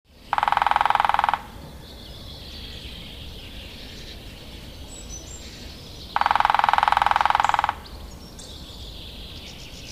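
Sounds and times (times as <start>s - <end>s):
Lesser spotted woodpecker giving high thin kee notes: 0.2s - 1.6s, 5.1s - 9.9s.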